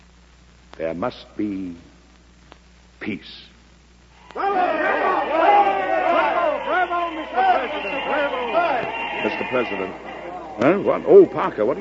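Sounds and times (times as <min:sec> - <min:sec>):
speech: 0:00.8 - 0:01.9, 0:03.0 - 0:03.5, 0:04.4 - 0:05.4, 0:09.2 - 0:11.8
crowd chatter after a speech: 0:04.2 - 0:11.8.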